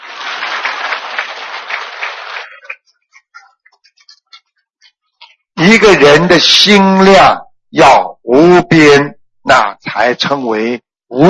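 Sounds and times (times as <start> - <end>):
audience applause: 0.0 - 2.9
speech: 5.7 - 11.2.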